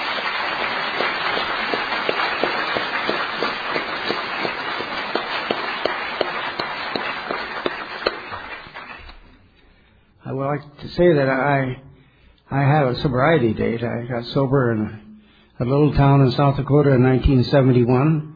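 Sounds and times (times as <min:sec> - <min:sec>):
audience applause: 0:00.0 - 0:09.3
speech: 0:10.5 - 0:11.9, 0:12.5 - 0:15.0, 0:15.6 - 0:18.3.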